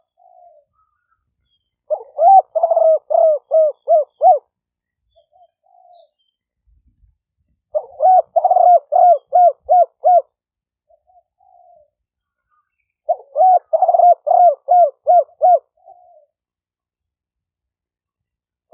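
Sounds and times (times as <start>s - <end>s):
spotted dove cooing: 0.0s - 0.8s, 1.9s - 4.5s, 5.2s - 6.2s, 7.7s - 12.0s, 13.0s - 16.4s.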